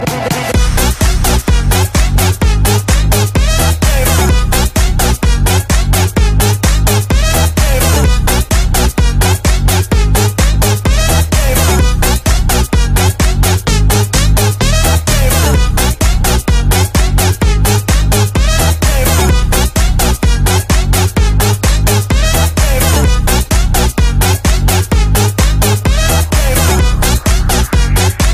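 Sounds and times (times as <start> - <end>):
dirty electro music at 146 BPM: 0.0 - 28.3.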